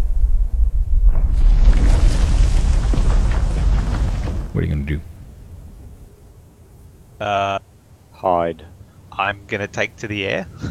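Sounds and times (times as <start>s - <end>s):
giant bear's thundering footfalls: 0.8s - 6.1s
speech: 4.9s - 5.1s, 7.2s - 10.6s.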